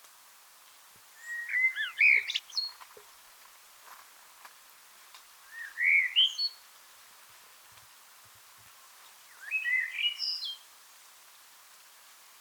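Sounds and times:
Eurasian blackbird singing: 1.2 - 2.8, 5.5 - 6.6, 9.3 - 10.6.

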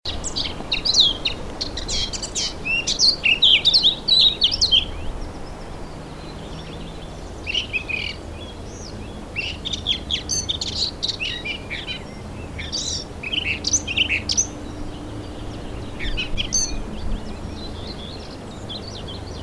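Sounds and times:
Eurasian blackcap song: 0.1 - 19.4.

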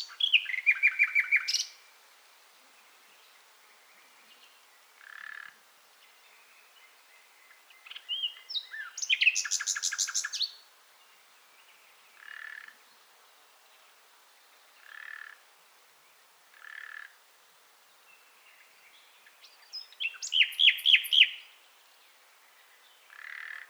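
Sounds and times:
common nightingale Luscinia megarhynchos song: 0.0 - 2.0, 2.7 - 13.1, 18.0 - 23.6.

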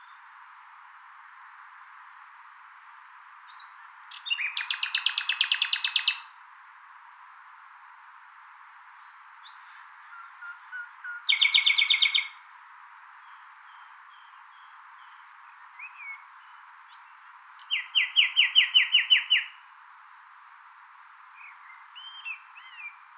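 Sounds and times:
common nightingale song: 2.8 - 6.4, 8.9 - 12.5, 13.1 - 20.0, 21.3 - 23.1.

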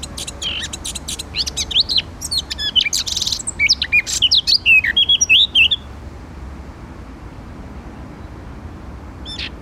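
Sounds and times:
Eurasian blackcap Sylvia atricapilla warbling: 0.0 - 5.9, 9.2 - 9.6.

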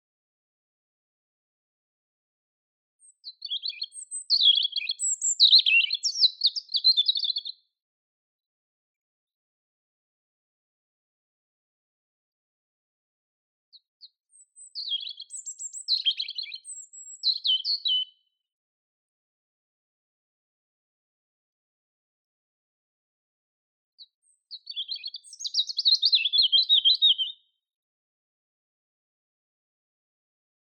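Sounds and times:
European robin song: 3.0 - 7.7, 13.7 - 18.4, 24.0 - 27.6.

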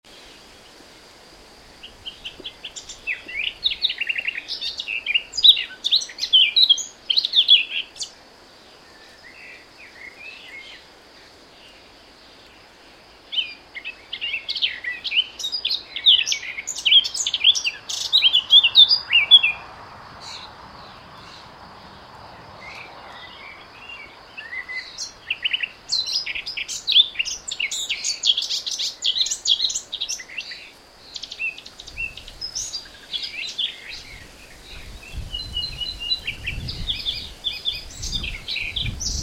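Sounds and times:
Eurasian blackcap song: 1.8 - 8.2, 13.3 - 19.6, 22.6 - 39.2.

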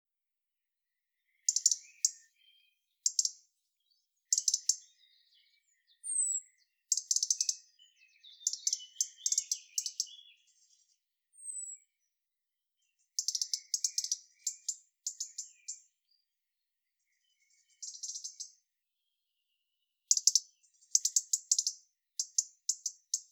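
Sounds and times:
European robin singing: 0.9 - 23.2.

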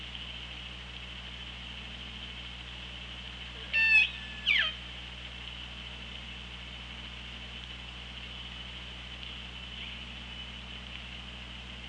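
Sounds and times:
electrical hum: 0.0 - 11.8
orca calls underwater: 3.6 - 4.8.

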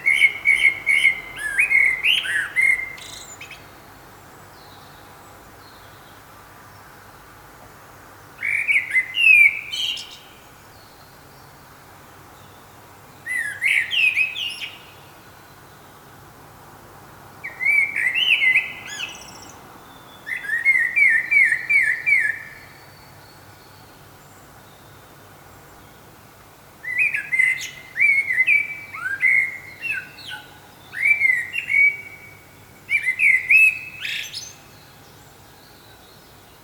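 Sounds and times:
common blackbird singing: 0.0 - 3.8, 8.4 - 11.0, 13.2 - 15.0, 17.4 - 24.0, 26.8 - 36.4.

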